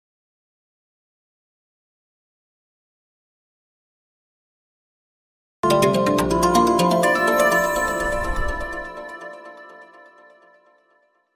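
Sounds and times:
call ringtone background music: 5.6 - 10.9.

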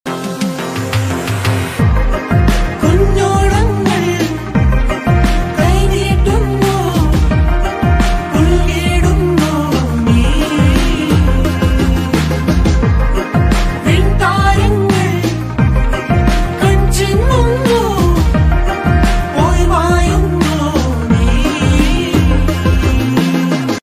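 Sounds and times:
Malayalam film title track ringtone music: 0.2 - 23.8.

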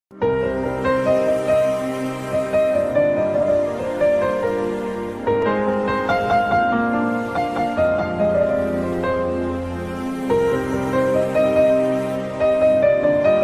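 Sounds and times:
background music: 0.1 - 13.4.

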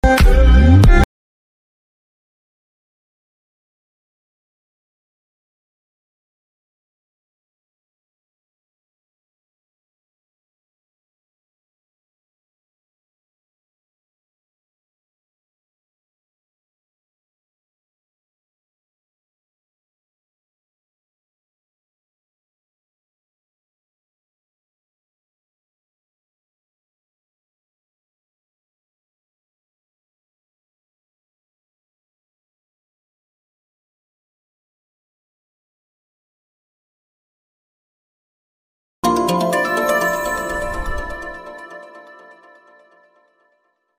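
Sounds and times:
call ringtone background music: 0.0 - 1.1, 39.0 - 43.4.

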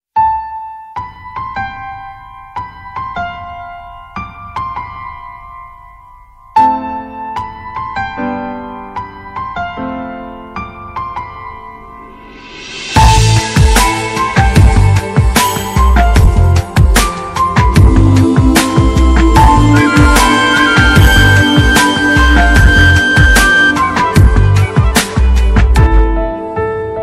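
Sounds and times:
background music: 0.2 - 27.0
ringtone music: 13.0 - 26.0.

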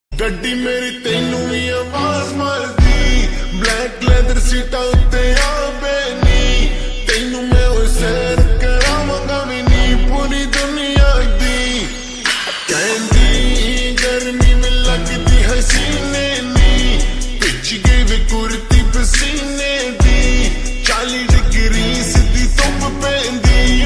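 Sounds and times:
new Hindi ringtone: 0.2 - 23.8.

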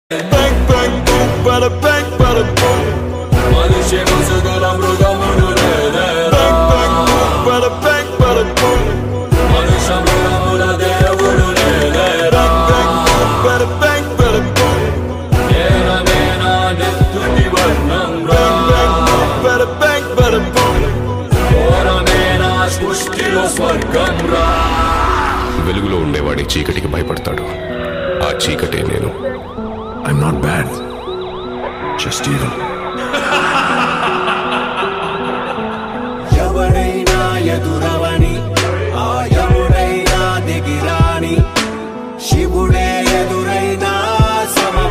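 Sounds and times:
villain background music ringtone: 0.1 - 44.8
laughter: 32.5 - 37.7.

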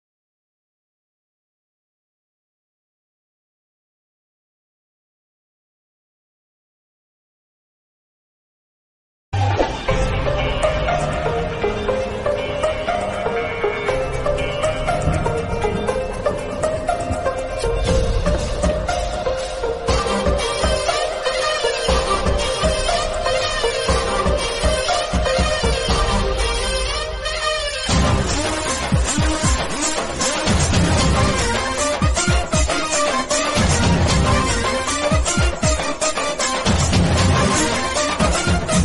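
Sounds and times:
Tamil ringtone: 9.6 - 38.8.

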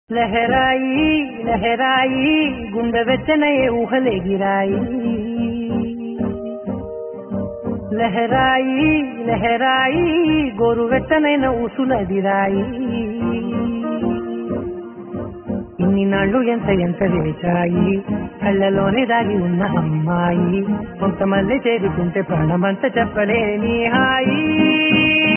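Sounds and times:
Telugu love songs: 0.1 - 25.3.

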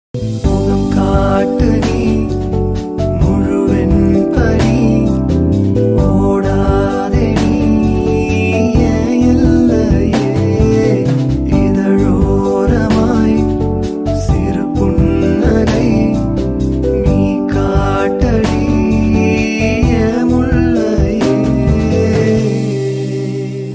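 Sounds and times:
Tamil love song: 0.2 - 23.7.

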